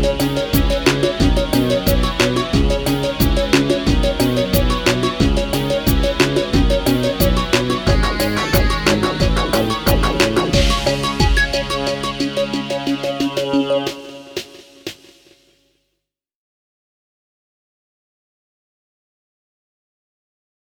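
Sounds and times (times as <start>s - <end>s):
karaoke backing track: 0.0s - 15.2s.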